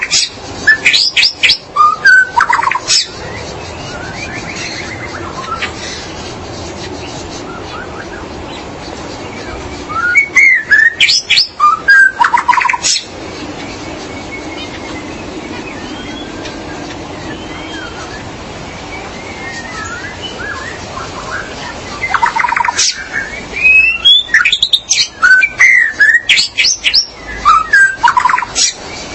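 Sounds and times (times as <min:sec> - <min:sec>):
magpie-robin or shama song: 0:00.0 - 0:06.0, 0:07.3 - 0:08.6, 0:09.2 - 0:13.1, 0:14.0 - 0:16.5, 0:17.2 - 0:29.1.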